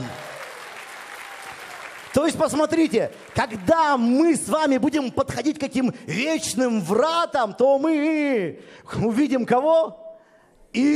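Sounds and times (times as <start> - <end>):
applause: 0.0 - 4.5
speech: 2.2 - 10.0, 10.7 - 10.9.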